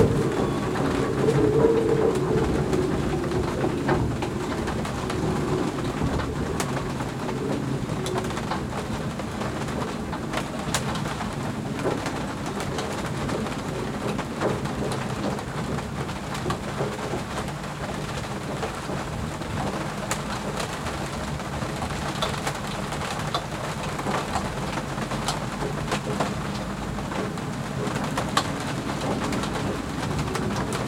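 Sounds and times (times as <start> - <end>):
gale force wind on a yacht heard from the cabin: 0.0 - 8.0
rain on a yacht heard from the cabin: 0.0 - 30.8.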